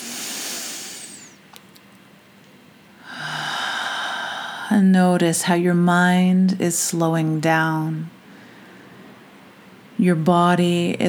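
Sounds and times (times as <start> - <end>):
deep breaths during guided relaxation: 0.0 - 1.5, 3.0 - 4.8, 8.2 - 9.6
speech: 4.7 - 8.2, 10.0 - 11.0.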